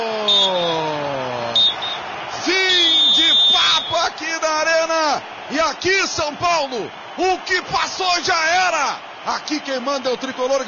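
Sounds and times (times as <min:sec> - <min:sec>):
referee's whistle ending a football match between Grêmio and São Paulo in Porto Alegre: 0:00.1 - 0:04.2
speech: 0:05.6 - 0:10.6.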